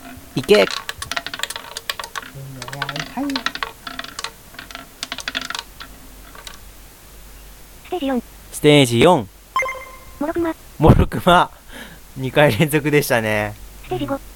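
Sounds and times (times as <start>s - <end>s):
roulette wheel spinning sound effect: 0.0s - 6.7s
speech: 0.4s - 0.8s, 8.0s - 9.3s, 10.2s - 11.6s, 12.2s - 14.3s.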